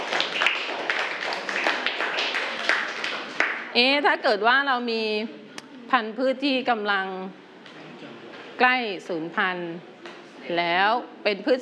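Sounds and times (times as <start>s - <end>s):
classroom clapping: 0.0s - 3.7s
speech: 3.8s - 7.4s, 8.6s - 9.9s, 10.5s - 11.6s.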